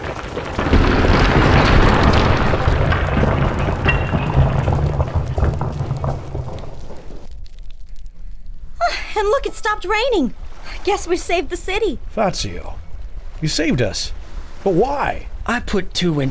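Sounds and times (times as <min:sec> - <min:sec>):
wall smashed open: 0:00.0 - 0:07.9
rubble tumbling down: 0:00.0 - 0:16.2
speech: 0:09.4 - 0:12.8, 0:13.4 - 0:16.2.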